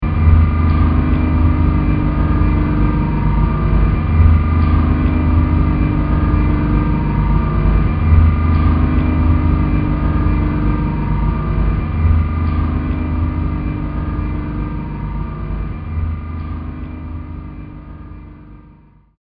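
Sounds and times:
elevator ride: 0.0 - 19.0.

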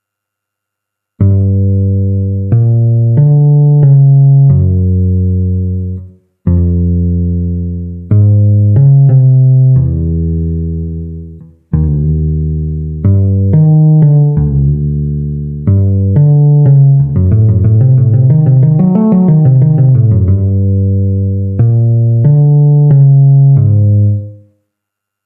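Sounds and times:
bass playing: 1.2 - 24.5.

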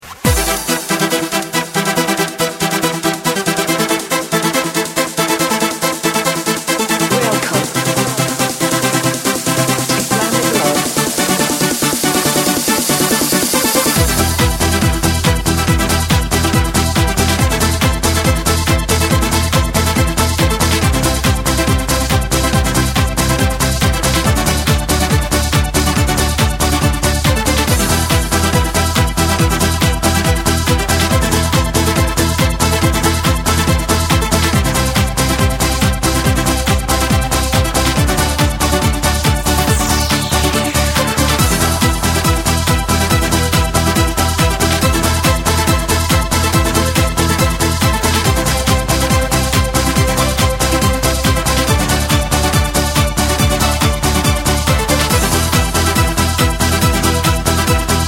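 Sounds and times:
techno music: 0.0 - 58.0.

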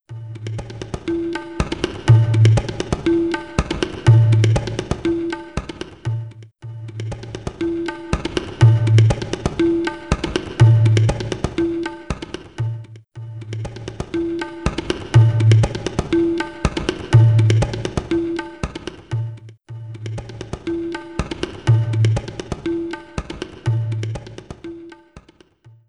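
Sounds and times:
drumming: 0.4 - 25.5.

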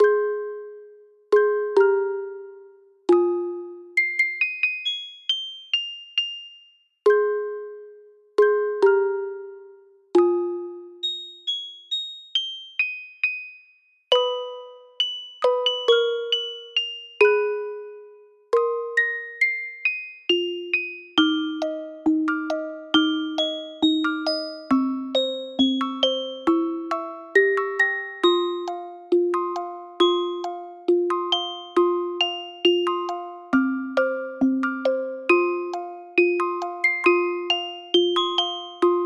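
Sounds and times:
music box: 0.0 - 39.0.

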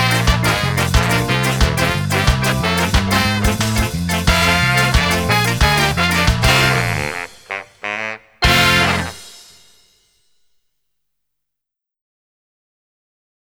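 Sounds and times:
ska music: 0.0 - 9.9.

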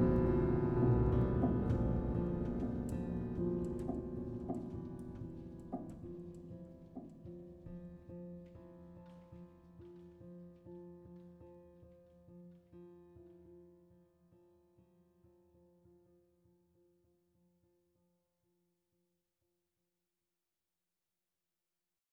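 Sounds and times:
twang music bed: 0.0 - 6.0.

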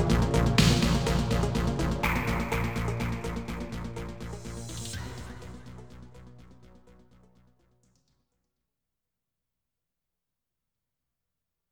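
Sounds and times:
night vision stage game background music: 0.0 - 6.4.

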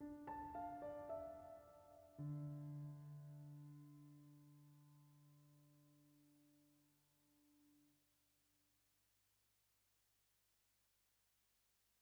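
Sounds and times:
piano: 0.0 - 6.7.

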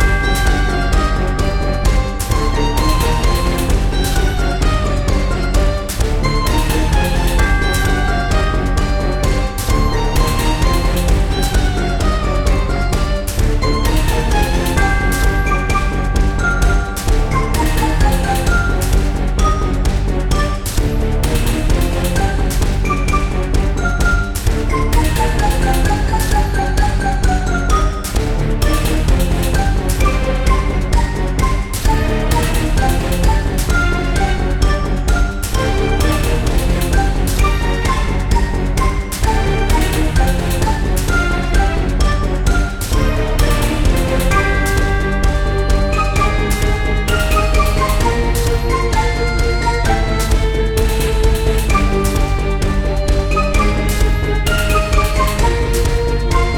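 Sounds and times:
in-game swamp background music: 0.0 - 56.5.

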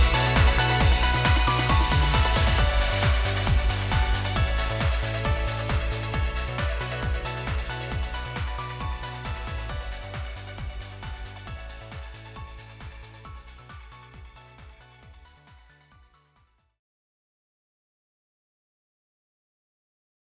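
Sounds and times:
instrumental music without vocal: 0.0 - 15.3.

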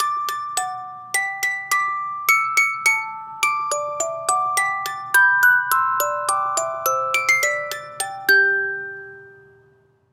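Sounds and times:
music box: 0.0 - 10.1.

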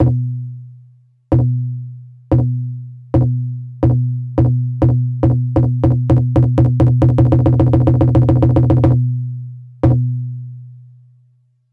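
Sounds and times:
unveiling drum: 1.3 - 1.7, 2.3 - 2.6, 3.2 - 9.0, 9.8 - 10.1.

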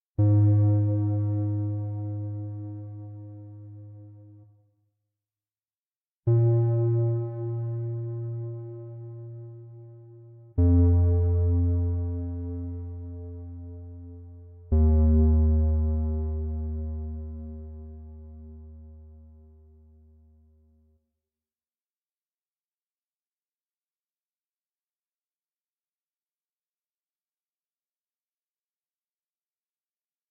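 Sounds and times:
bass: 0.2 - 4.5, 6.2 - 20.9.

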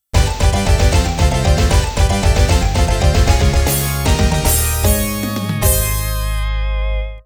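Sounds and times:
music: 0.1 - 7.2.

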